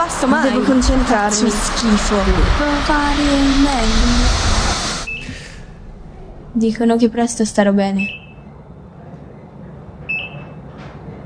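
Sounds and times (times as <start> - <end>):
speech: 0.0 - 4.6, 6.6 - 8.2
low hum: 0.0 - 11.2
high electronic beep: 5.1 - 5.4, 8.0 - 8.5, 10.1 - 10.5.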